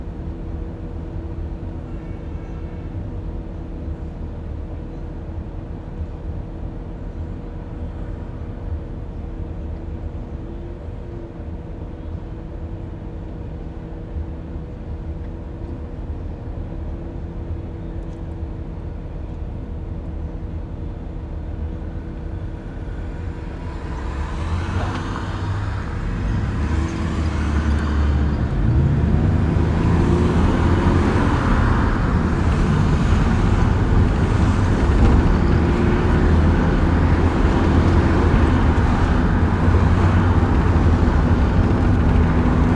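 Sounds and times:
car engine rumble: 0.0s - 42.7s
road hum: 0.0s - 42.7s
car wash rushing and hissing in Phoenix Arizona: 23.1s - 42.7s.

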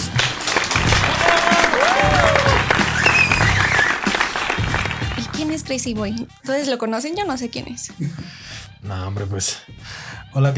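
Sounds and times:
applause: 0.0s - 5.7s
speech: 5.7s - 10.5s.

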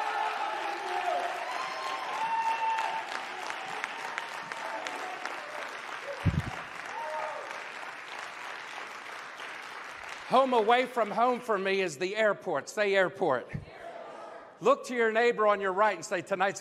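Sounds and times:
audience applause: 0.0s - 11.1s
speech: 10.3s - 13.7s, 14.6s - 16.6s.

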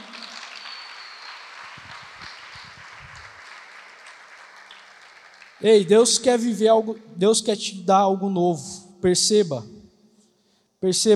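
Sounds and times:
audience applause: 0.0s - 5.9s
speech: 5.6s - 9.8s, 10.8s - 11.1s.

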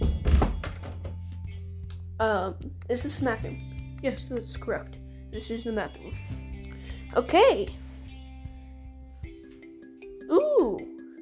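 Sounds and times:
door being closed: 0.0s - 1.1s
speech: 2.2s - 6.4s, 7.1s - 7.8s.

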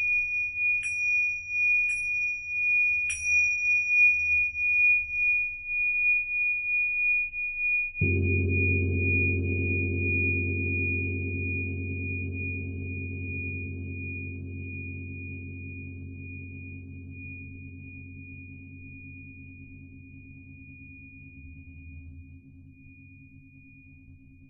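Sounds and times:
Tibetan singing bowls ringing: 0.0s - 22.0s
deep low singing bowl: 8.0s - 24.4s.

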